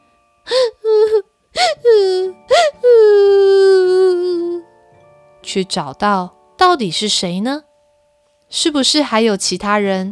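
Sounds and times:
person crying sound effect: 0.5s - 4.7s
speech: 5.5s - 7.7s, 8.5s - 10.1s.

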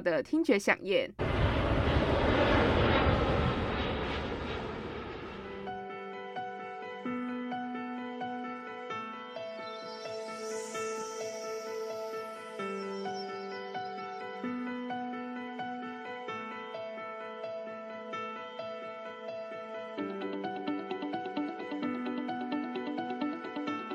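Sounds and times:
speech: 0.0s - 1.3s
airplane jet engines roaring on takeoff: 1.2s - 6.0s
calm tonal airline boarding music: 5.7s - 23.9s.

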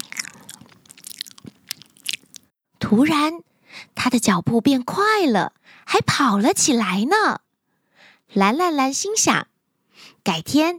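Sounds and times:
chewing fruit while walking: 0.0s - 2.5s
speech: 2.9s - 7.4s, 8.3s - 10.7s.

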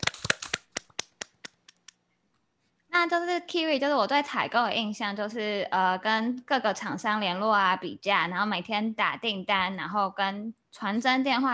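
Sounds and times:
hosts clapping hands in welcome: 0.0s - 2.0s
speech: 3.0s - 11.5s.

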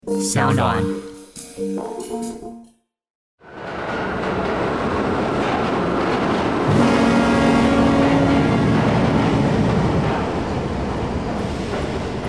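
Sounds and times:
speech: 0.2s - 1.0s, 1.6s - 2.6s
train pulling into a station platform: 3.4s - 12.2s.

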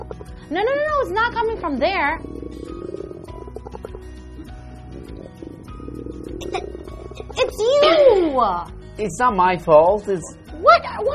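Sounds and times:
stomach growling: 0.0s - 7.9s
speech: 0.5s - 2.3s, 7.4s - 11.1s.

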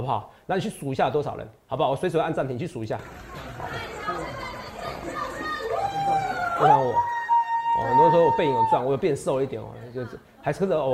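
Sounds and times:
speech: 0.0s - 4.4s, 6.6s - 7.1s, 7.8s - 10.9s
crowd cheering at a lecture: 3.0s - 9.0s.

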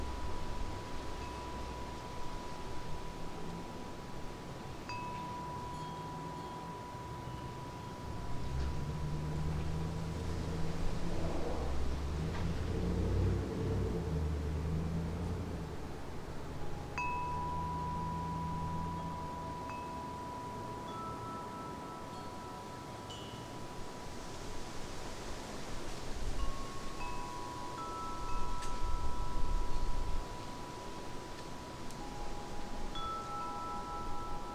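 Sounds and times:
wind chimes ringing in the wind: 0.0s - 10.0s, 15.6s - 34.5s
low rumble: 8.1s - 19.0s.

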